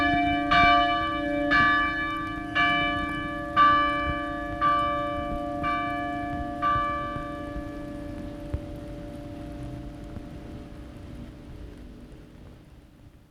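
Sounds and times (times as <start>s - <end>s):
bells ringing: 0.0s - 10.0s.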